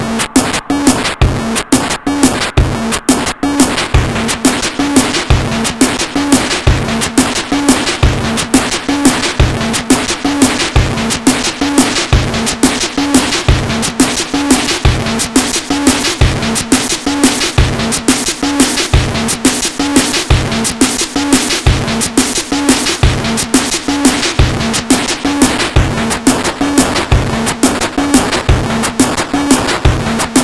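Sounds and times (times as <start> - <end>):
Casio keyboard beat with delay in a hall: 0.0 - 30.4.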